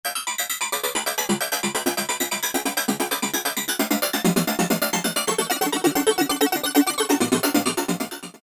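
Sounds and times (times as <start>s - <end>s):
Korg MS2000 arpeggiated synth: 0.1s - 8.4s.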